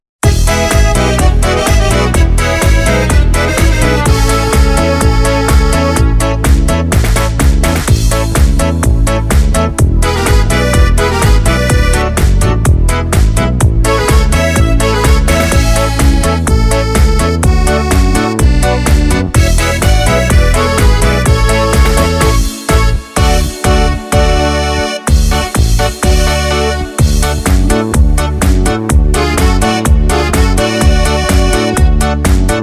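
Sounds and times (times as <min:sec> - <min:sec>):
Korg Pa3X arranger keyboard: 0:00.2 - 0:32.6.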